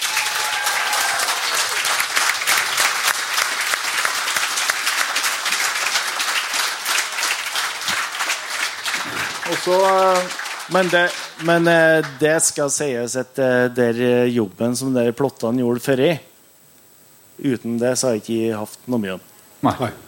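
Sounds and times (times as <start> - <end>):
audience applause: 0.0 - 12.7
speech: 9.6 - 16.3, 17.4 - 20.0.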